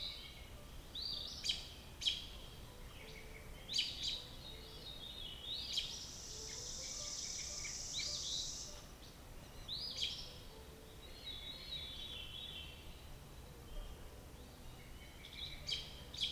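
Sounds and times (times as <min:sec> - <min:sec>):
robin singing: 0:00.0 - 0:16.3.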